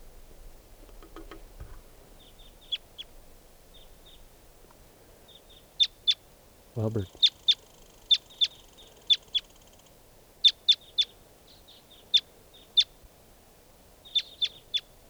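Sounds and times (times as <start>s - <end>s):
wild birds chirping: 0.0s - 6.2s, 6.8s - 9.4s
faint hiss: 0.0s - 15.0s
speech: 6.8s - 7.2s.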